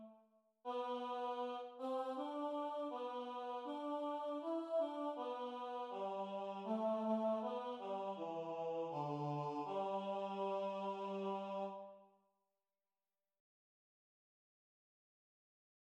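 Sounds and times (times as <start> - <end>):
tenor singing: 0.8 - 11.8.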